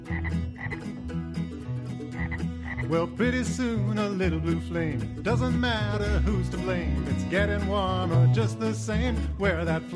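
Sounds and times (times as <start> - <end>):
frogs croaking in a dense chorus: 0.0 - 0.9, 2.1 - 2.9
speech: 2.9 - 9.9.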